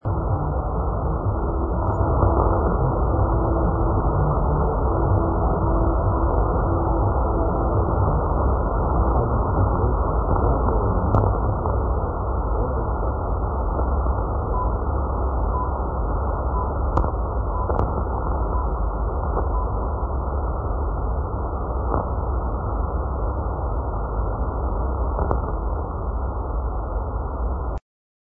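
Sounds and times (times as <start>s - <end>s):
radio broadcast in Romania: 0.0s - 27.8s.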